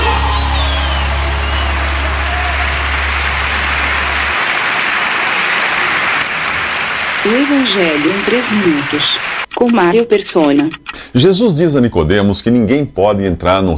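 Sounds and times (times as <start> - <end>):
audience applause: 0.0 - 9.5
speech: 7.3 - 13.7.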